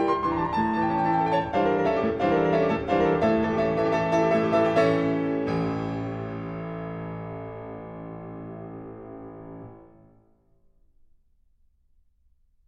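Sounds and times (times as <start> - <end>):
fast dance on piano: 0.0 - 9.9.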